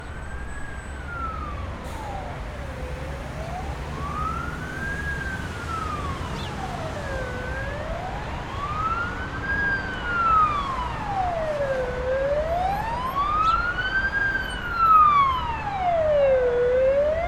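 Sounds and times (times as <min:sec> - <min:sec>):
busy city street traffic: 0:00.0 - 0:17.2
siren in city streets: 0:00.0 - 0:17.2.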